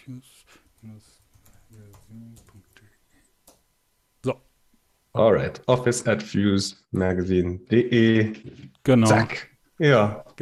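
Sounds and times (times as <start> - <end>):
speech: 0.0 - 2.9, 4.2 - 4.5, 5.2 - 10.4
typing an email address on a computer keyboard: 0.7 - 2.8.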